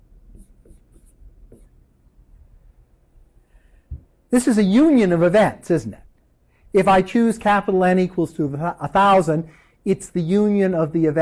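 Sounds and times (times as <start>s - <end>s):
writing during a mathematics lecture: 0.2s - 1.9s
speech: 4.3s - 6.0s, 6.7s - 11.2s.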